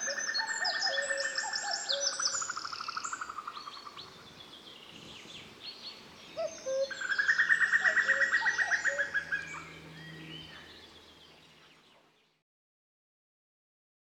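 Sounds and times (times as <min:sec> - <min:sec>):
common cuckoo calling its two-note cu-coo: 0:00.0 - 0:02.5, 0:06.4 - 0:10.9.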